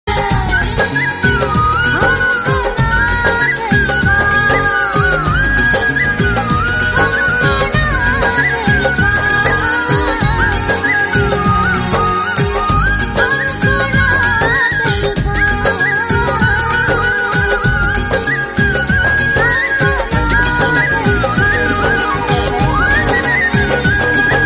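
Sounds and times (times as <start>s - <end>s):
instrumental music: 0.1s - 24.4s.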